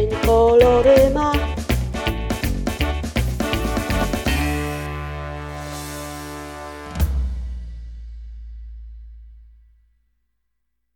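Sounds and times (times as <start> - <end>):
rock and roll music: 0.0 - 7.7.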